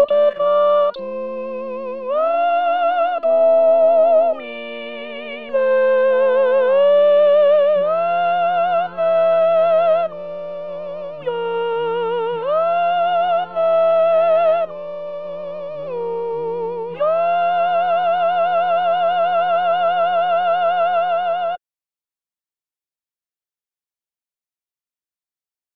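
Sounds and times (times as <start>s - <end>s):
tenor guide voices singing: 0.0s - 21.3s.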